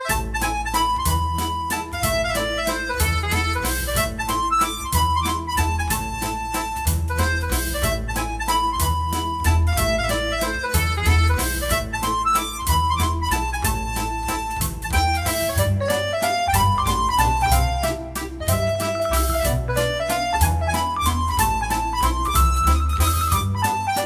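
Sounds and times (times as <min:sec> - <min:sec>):
waltz ringtone: 0:00.0 - 0:24.0.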